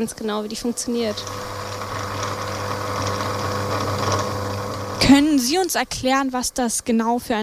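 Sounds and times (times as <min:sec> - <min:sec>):
speech: 0:00.0 - 0:01.6, 0:05.1 - 0:07.4
gluing machine spreading glue onto paper: 0:00.0 - 0:05.7.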